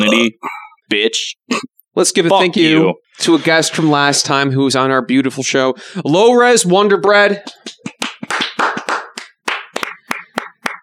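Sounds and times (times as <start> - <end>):
speech: 0.1 - 7.8
clapping: 7.6 - 10.8.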